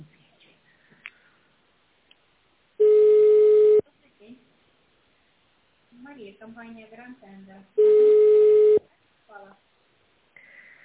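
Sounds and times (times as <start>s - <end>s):
electronic tone of a telephone call being transferred to a secretary: 2.8s - 3.8s, 7.8s - 8.8s
speech: 6.2s - 8.3s, 9.3s - 9.7s.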